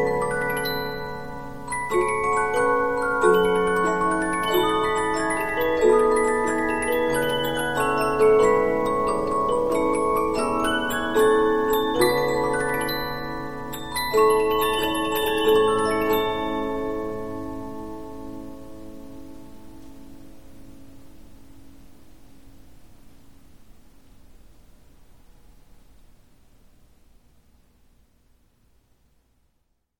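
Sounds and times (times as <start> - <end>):
Polyphon 15-inch disc music box playing: 0.0 - 18.5.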